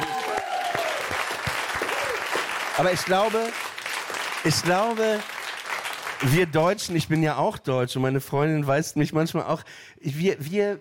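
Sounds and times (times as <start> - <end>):
audience applause on a German radio show: 0.0 - 6.6
speech: 2.8 - 3.7, 4.4 - 5.3, 6.2 - 10.8.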